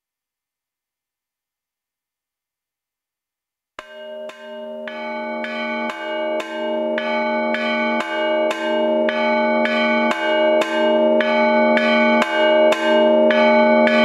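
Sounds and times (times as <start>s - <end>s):
bells ringing: 3.8s - 14.0s.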